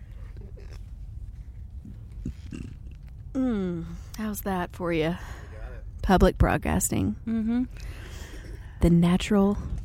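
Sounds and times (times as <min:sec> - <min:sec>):
person burping: 0:02.2 - 0:03.8
speech: 0:03.4 - 0:05.3, 0:06.1 - 0:08.0, 0:08.8 - 0:09.8.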